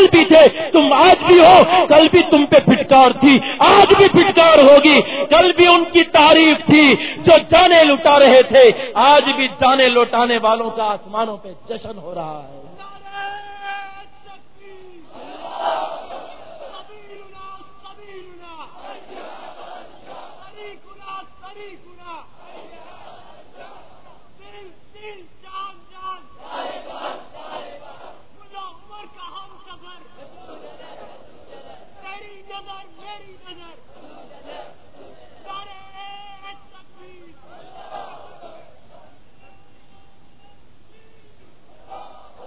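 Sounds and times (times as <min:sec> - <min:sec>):
speech: 0:00.0 - 0:13.5
crowd of white-bearded elderly men chanting slogans: 0:15.0 - 0:24.5, 0:26.2 - 0:28.6, 0:29.7 - 0:36.0, 0:36.9 - 0:39.6, 0:41.7 - 0:42.4.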